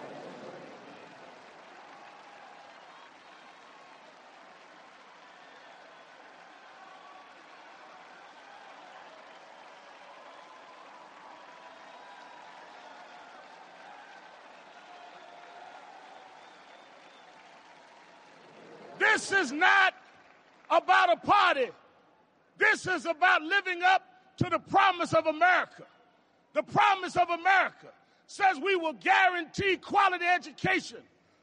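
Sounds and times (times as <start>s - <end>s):
audience applauding Al Sharpton's speech at a podium: 0.0s - 21.6s
speech: 19.1s - 20.0s, 20.7s - 21.8s, 22.6s - 25.9s, 26.5s - 31.1s.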